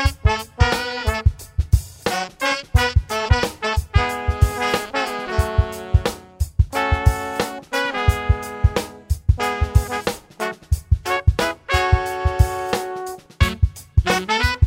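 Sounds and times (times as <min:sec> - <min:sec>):
hot horns playing: 0:00.0 - 0:14.6.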